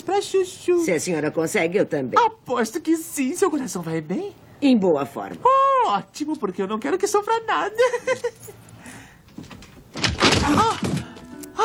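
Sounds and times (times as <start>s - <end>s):
speech: 0.0s - 8.7s
stuck door rattling and scraping as it is forced open: 9.3s - 11.1s.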